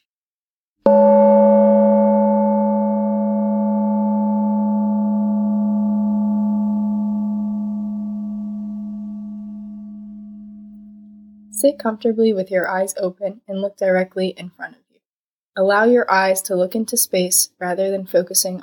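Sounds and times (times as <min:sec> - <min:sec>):
small gong ringing: 0:00.9 - 0:11.6
speech: 0:11.6 - 0:14.8, 0:15.6 - 0:18.6.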